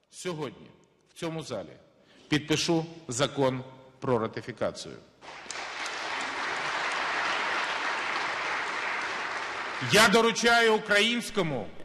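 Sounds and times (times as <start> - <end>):
speech: 0.1 - 5.4, 9.8 - 11.8
members of Ukraine's parliament applauding President Poroshenko: 5.2 - 10.5.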